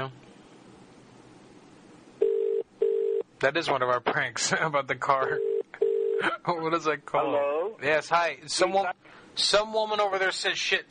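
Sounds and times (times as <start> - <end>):
faint hiss: 0.0 - 10.8
telephone ringback tone during a callback: 2.2 - 3.2, 5.4 - 6.2
speech: 3.4 - 10.8.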